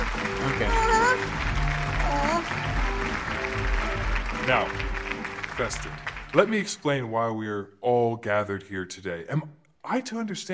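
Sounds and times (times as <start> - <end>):
audience applause: 0.0 - 6.8
speech: 4.5 - 4.8, 5.6 - 10.5.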